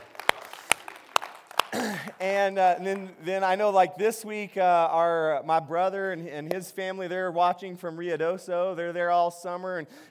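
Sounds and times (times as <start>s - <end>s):
hand claps welcoming families joining by video: 0.0s - 3.1s
speech: 1.7s - 10.0s.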